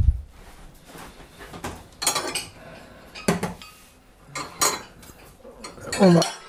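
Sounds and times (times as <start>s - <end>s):
cutlery clinking and scraping a plate as food is cut: 1.6s - 6.4s.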